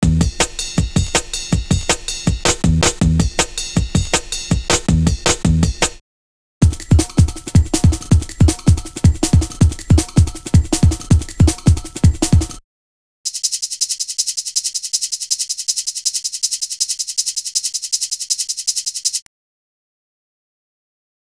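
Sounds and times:
jungle breakbeat music: 0.0 - 6.0, 6.6 - 12.6.

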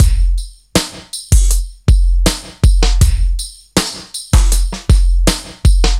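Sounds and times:
drum loop: 0.0 - 5.9.

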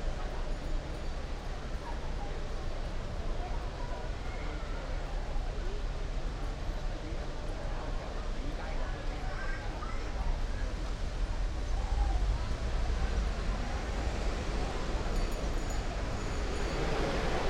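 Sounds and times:
loud city soundscape: 0.0 - 17.4.

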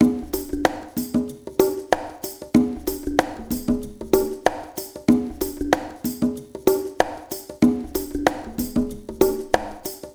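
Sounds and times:
shuffle percussion mix with liquid grooves: 0.0 - 10.1.

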